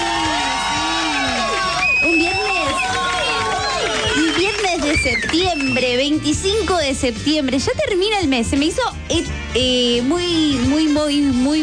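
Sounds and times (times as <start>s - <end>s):
crowd applauding and cheering: 0.0s - 6.2s
speech: 5.0s - 11.6s.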